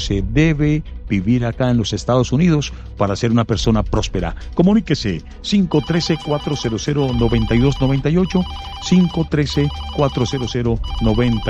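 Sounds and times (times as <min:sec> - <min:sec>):
speech: 0:00.0 - 0:11.4
telephone ringtone of an incoming call to a radio show: 0:05.7 - 0:11.4.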